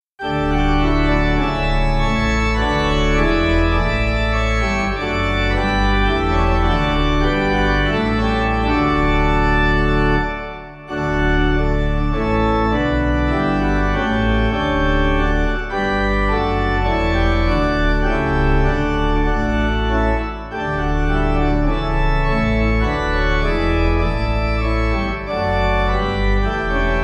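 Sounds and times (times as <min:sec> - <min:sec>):
pipe organ: 0:00.2 - 0:27.0.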